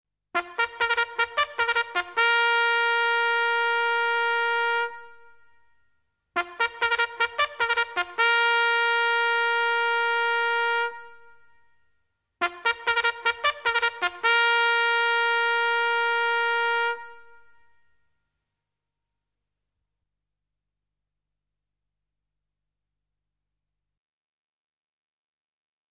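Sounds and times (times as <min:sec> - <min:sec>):
military trumpet call: 0:00.4 - 0:05.4, 0:06.4 - 0:11.4, 0:12.4 - 0:17.6.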